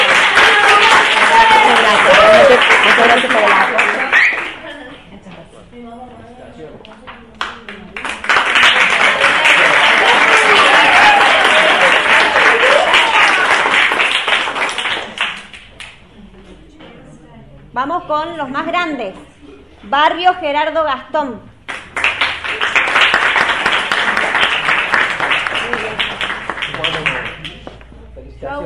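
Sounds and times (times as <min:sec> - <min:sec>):
audience applause: 0:00.0 - 0:04.6, 0:07.9 - 0:15.8, 0:21.7 - 0:27.8
speech: 0:02.6 - 0:03.8, 0:18.1 - 0:21.5, 0:28.4 - 0:28.6.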